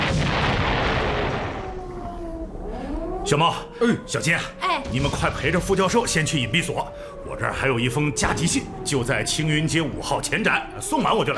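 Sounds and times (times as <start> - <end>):
bomb explosions during an air raid: 0.0 - 2.2, 4.8 - 6.1
speech: 3.3 - 11.3.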